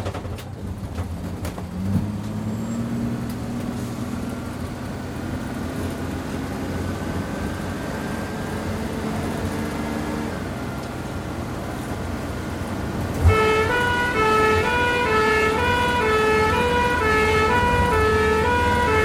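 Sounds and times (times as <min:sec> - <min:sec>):
ambulance starting into constant run at speed: 0:00.0 - 0:19.0
heavy traffic: 0:00.0 - 0:19.0
ambulance two-tone horn siren: 0:13.2 - 0:19.0.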